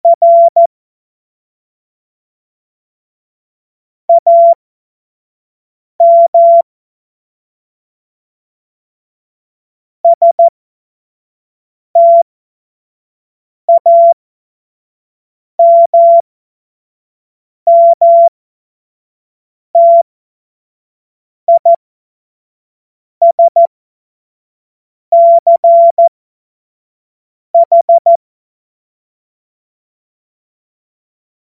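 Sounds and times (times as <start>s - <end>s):
Morse code course tones: 0.0s - 0.7s, 4.1s - 4.6s, 6.0s - 6.6s, 10.1s - 10.5s, 12.0s - 12.2s, 13.7s - 14.2s, 15.6s - 16.2s, 17.7s - 18.3s, 19.8s - 20.0s, 21.5s - 21.8s, 23.2s - 23.7s, 25.1s - 26.1s, 27.6s - 28.2s.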